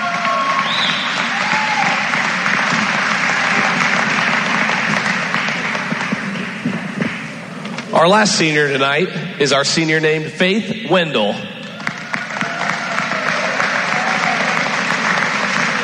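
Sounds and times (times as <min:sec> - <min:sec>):
audience applause: 0:00.0 - 0:07.8, 0:11.7 - 0:15.8
speech: 0:08.0 - 0:11.5.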